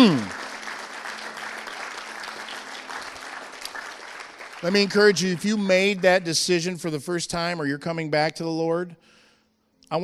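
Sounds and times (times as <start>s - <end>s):
speech: 0.0s - 0.4s, 4.6s - 9.2s
audience applause: 0.0s - 6.3s.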